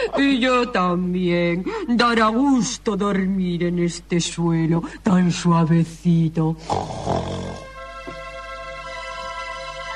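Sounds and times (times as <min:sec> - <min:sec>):
speech: 0:00.2 - 0:07.6
pig snoring: 0:06.6 - 0:07.7
steady tonal music: 0:07.6 - 0:09.9.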